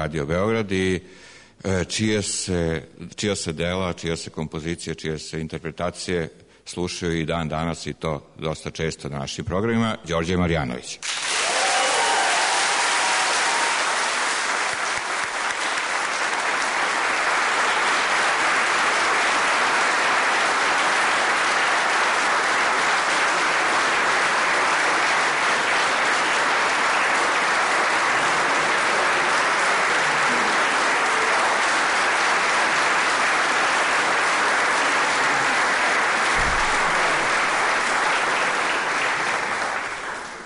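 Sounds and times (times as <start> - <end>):
speech: 0.0 - 11.2
audience applause at a musical tribute event: 11.0 - 40.4.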